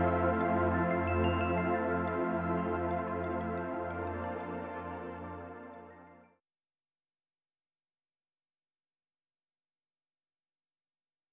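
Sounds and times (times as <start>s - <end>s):
instrumental music: 0.0s - 6.2s.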